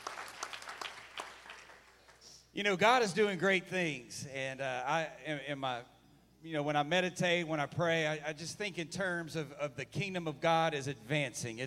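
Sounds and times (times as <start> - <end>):
audience clapping hands: 0.0 - 2.4
speech: 2.6 - 11.6.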